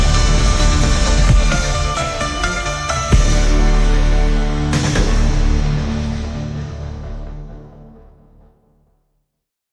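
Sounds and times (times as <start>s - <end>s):
Brazilian funk music: 0.0s - 7.4s.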